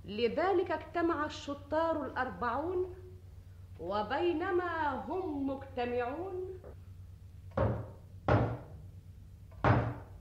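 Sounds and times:
speech: 0:00.1 - 0:03.0, 0:03.8 - 0:06.8
heavy knocks on a door: 0:07.5 - 0:08.7, 0:09.6 - 0:10.1.

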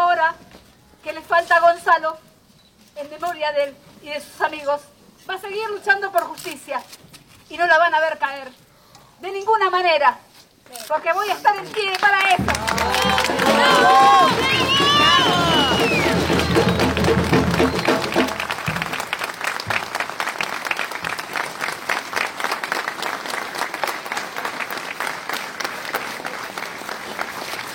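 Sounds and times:
speech: 0:01.0 - 0:02.3, 0:03.0 - 0:08.6, 0:09.2 - 0:14.8
audience applause at a gathering: 0:11.8 - 0:27.7.

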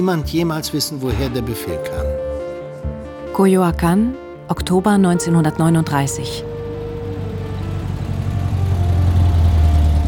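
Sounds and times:
speech: 0:00.0 - 0:06.5
car being parked: 0:04.6 - 0:10.0
car engine idling: 0:05.6 - 0:10.0.

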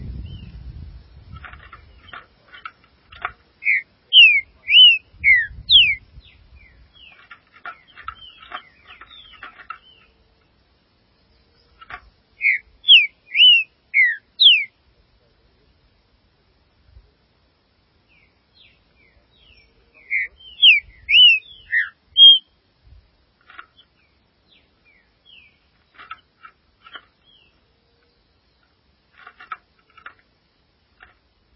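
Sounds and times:
green-winged saltator singing slurred whistles: 0:03.6 - 0:06.0, 0:12.4 - 0:14.7, 0:20.0 - 0:22.5.

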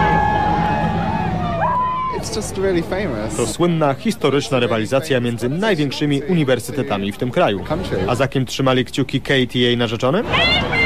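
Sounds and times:
crowd shouting as rowing boats pass: 0:00.0 - 0:02.6, 0:10.2 - 0:10.8
speech: 0:02.3 - 0:10.7.

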